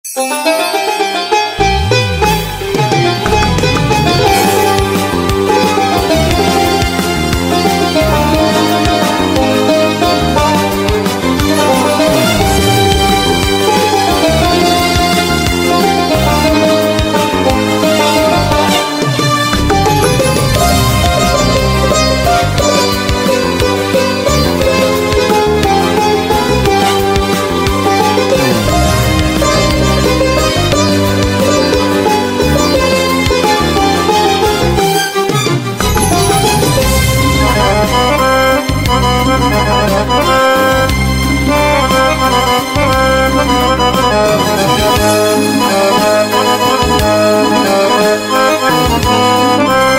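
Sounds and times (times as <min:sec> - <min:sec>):
accordion: 0:00.0 - 0:49.9.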